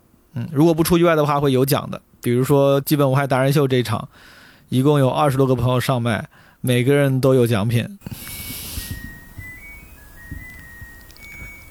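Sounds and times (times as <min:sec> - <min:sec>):
speech: 0:00.4 - 0:08.4
washing machine signal sounding: 0:08.1 - 0:11.6.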